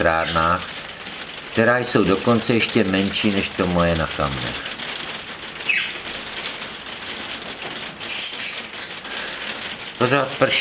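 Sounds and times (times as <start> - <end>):
speech: 0.0 - 0.8, 1.6 - 4.8, 10.0 - 10.6
budgerigars chirping: 5.7 - 6.0, 8.1 - 8.8.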